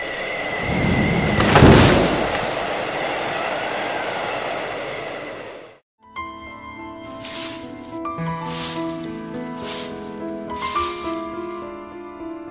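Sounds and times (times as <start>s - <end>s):
storm wind and rain: 0.0s - 5.7s, 8.5s - 11.6s
thunderclap: 0.6s - 3.6s.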